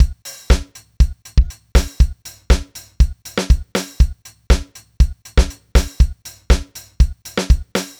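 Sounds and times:
nu jazz house beat: 0:00.0 - 0:07.9.

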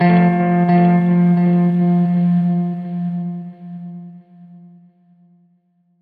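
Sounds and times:
Strat guitar loop: 0:00.0 - 0:04.7.

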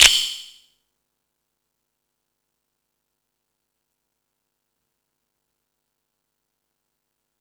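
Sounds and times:
Latin E-MU Pro-Cussion drum machine beat: 0:00.0 - 0:00.5.

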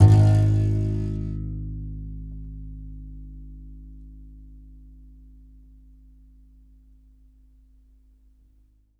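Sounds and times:
contrabass balalaika plucked: 0:00.0 - 0:01.8.

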